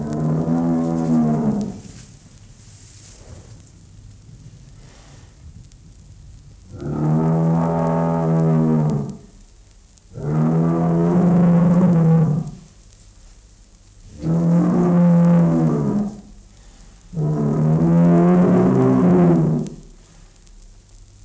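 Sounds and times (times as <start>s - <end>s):
bull bellowing a long deep moo: 0.0s - 2.2s, 6.7s - 9.3s, 10.2s - 12.6s, 14.1s - 16.4s, 17.1s - 19.8s.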